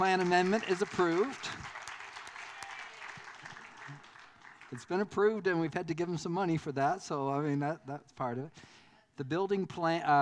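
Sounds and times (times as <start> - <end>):
speech: 0.0 - 1.6, 4.7 - 10.2
faint applause from a meeting audience: 0.0 - 4.8.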